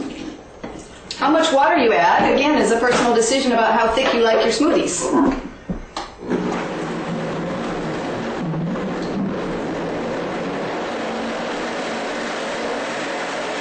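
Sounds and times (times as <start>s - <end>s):
speech: 1.2s - 5.4s
blender blending fruit for a smoothie: 6.2s - 13.5s.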